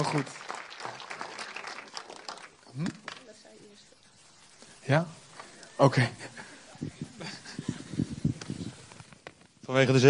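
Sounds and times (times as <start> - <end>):
speech: 0.0 - 0.4, 2.8 - 3.0, 4.8 - 5.2, 5.8 - 6.9, 9.7 - 10.0
audience applause: 0.0 - 3.4
laughter: 5.6 - 8.4.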